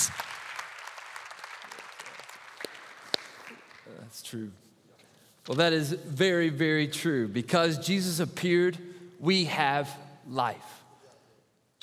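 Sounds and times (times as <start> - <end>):
round of applause: 0.0 - 4.1
speech: 4.1 - 4.6, 5.5 - 10.8.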